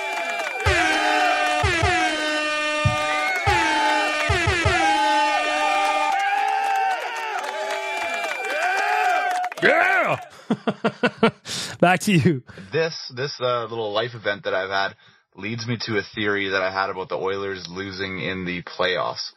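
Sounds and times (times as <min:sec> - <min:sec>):
horn-like blasts: 0:00.0 - 0:06.2
crowd cheering with whoops: 0:00.0 - 0:11.0
low thumps: 0:02.8 - 0:03.1
laughter: 0:09.6 - 0:12.6
speech: 0:10.5 - 0:19.3.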